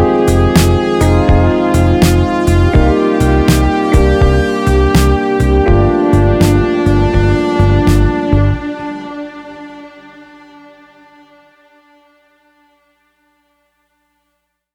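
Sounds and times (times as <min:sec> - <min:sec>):
blues music: 0:00.0 - 0:10.6.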